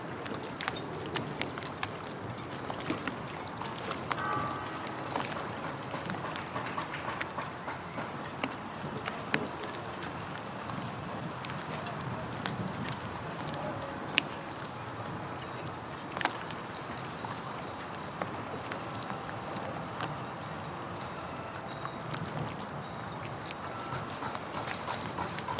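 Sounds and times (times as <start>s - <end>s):
boats at a marina: 0.0s - 25.5s
waves at a marina: 0.0s - 25.5s
marina traffic: 3.7s - 25.5s
construction noise: 4.1s - 9.9s, 23.4s - 25.5s
church bells ringing: 4.2s - 5.3s.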